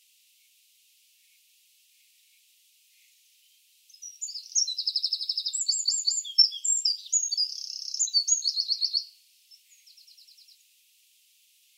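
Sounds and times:
Eurasian wren song: 1.2s - 10.8s.

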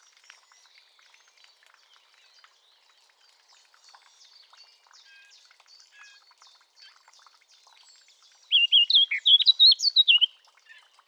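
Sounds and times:
Eurasian blackcap song: 8.5s - 10.4s.

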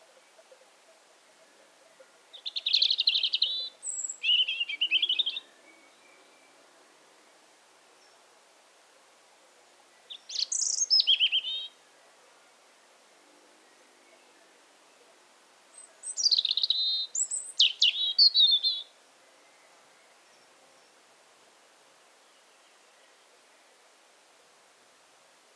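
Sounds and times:
faint background hiss: 0.0s - 25.5s
European robin song: 2.3s - 6.6s, 9.9s - 11.8s, 15.7s - 20.9s.

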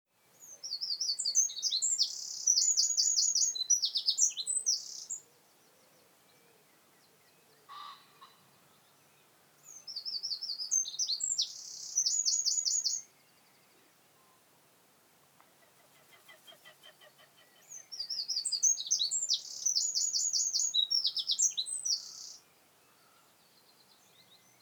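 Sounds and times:
Eurasian wren trilling song: 0.3s - 6.4s, 9.6s - 13.8s, 16.0s - 24.6s.

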